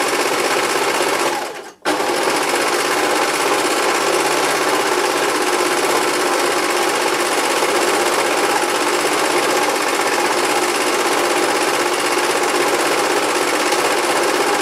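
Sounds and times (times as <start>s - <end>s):
home sewing machine: 0.0s - 14.6s.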